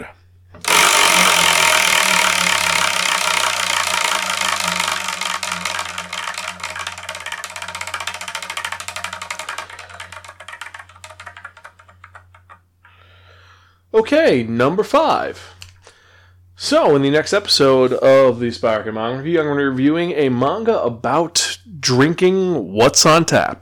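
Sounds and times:
spinning prize wheel clicking, picking the next manga to review: 0.6 - 12.6
speech: 14.0 - 15.6, 16.6 - 23.6.

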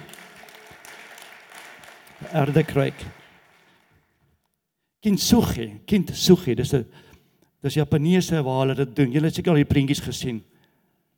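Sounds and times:
audience clapping hands: 0.0 - 4.4
speech: 2.2 - 3.2, 5.0 - 10.5.

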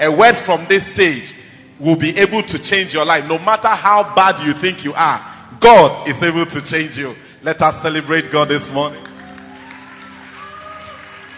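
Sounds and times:
speech: 0.0 - 9.1
audience applause: 9.0 - 11.3.

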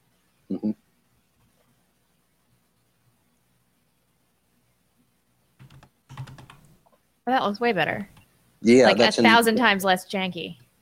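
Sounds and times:
speech: 0.5 - 0.8, 7.3 - 10.6
computer keyboard typing: 5.6 - 6.8.

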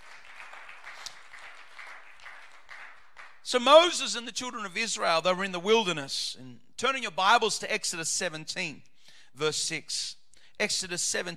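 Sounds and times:
audience clapping: 0.0 - 3.6
speech: 3.5 - 11.3.

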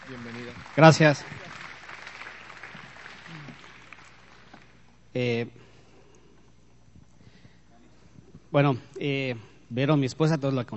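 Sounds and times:
audience applause: 0.0 - 4.8
speech: 0.1 - 1.4, 5.2 - 5.6, 8.5 - 10.7.

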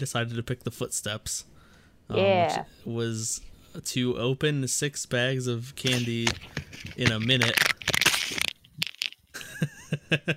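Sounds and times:
speech: 0.0 - 7.7, 10.1 - 10.3
loud rustling of fumbled headphones: 5.8 - 9.3.

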